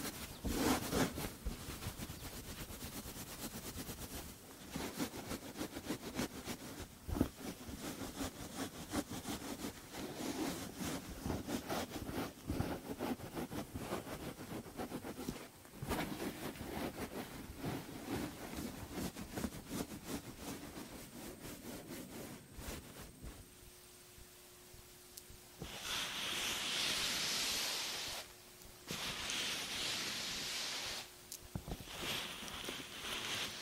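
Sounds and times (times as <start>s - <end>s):
head spa crackling and scratching: 0.0s - 23.4s, 25.6s - 28.3s, 28.9s - 33.6s
low steady hum: 0.0s - 33.6s
loud steam hiss: 25.6s - 33.6s.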